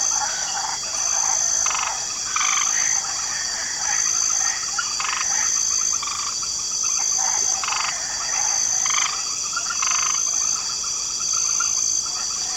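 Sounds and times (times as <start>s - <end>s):
light chorus of frogs croaking in a swamp: 0.0s - 12.5s.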